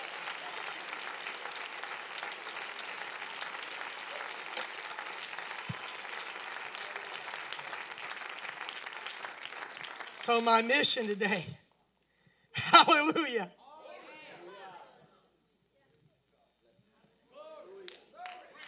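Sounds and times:
audience applauding: 0.0s - 10.9s, 17.9s - 18.6s
speech: 10.2s - 11.6s, 13.0s - 13.6s.

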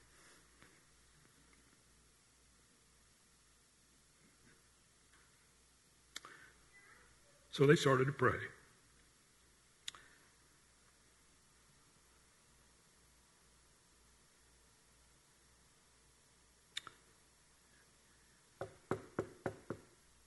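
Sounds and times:
hiss: 0.0s - 20.2s
speech: 7.6s - 8.6s
knocking at a front door: 18.6s - 19.9s.

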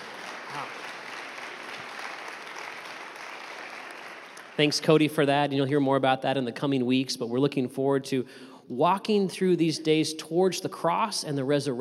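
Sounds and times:
round of applause: 0.0s - 5.3s
speech: 4.6s - 11.7s.

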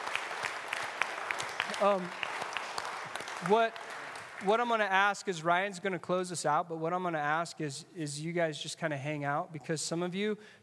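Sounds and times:
crowd applause: 0.0s - 4.8s
speech: 1.8s - 2.2s, 3.4s - 10.6s.

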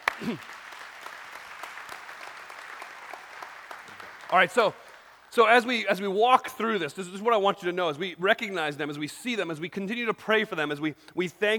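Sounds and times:
audience applause: 0.0s - 5.3s
speech: 0.2s - 0.6s, 4.3s - 11.5s.

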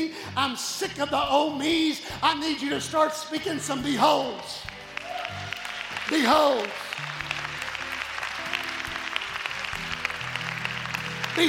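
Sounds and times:
speech: 0.0s - 4.7s, 6.1s - 7.2s
crowd applauding: 4.6s - 11.4s.

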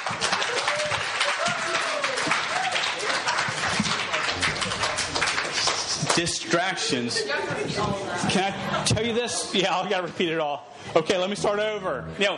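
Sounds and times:
voices cheering and calling out: 0.0s - 5.8s
large crowd applauding the band: 0.0s - 6.9s
speech: 6.2s - 12.3s.

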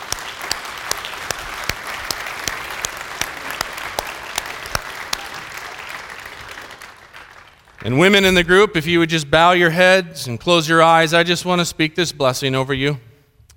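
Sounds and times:
audience round of applause: 0.0s - 8.0s
speech: 7.8s - 13.1s.

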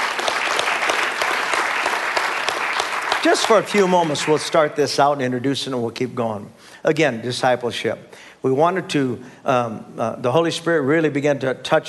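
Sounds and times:
audience clapping: 0.0s - 4.8s
speech: 3.2s - 11.8s.

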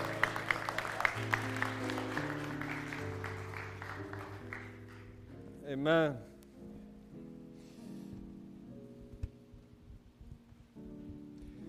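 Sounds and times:
audience applause: 0.0s - 5.2s
speech: 5.7s - 6.3s.

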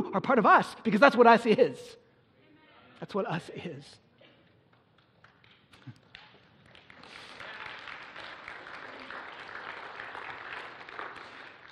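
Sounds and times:
speech: 0.0s - 2.0s, 3.0s - 4.0s
audience clapping: 4.6s - 11.7s.

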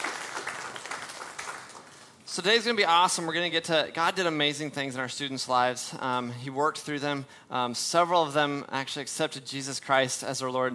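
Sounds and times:
round of applause: 0.0s - 2.1s
speech: 2.4s - 10.7s.

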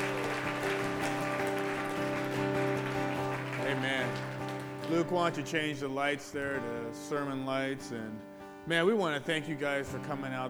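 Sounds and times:
audience clapping: 0.0s - 5.2s
speech: 4.9s - 10.4s.

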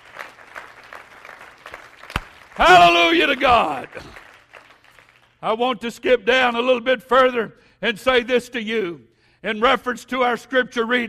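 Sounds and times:
audience clapping hands: 0.0s - 5.5s
speech: 2.6s - 4.2s, 5.4s - 11.0s.

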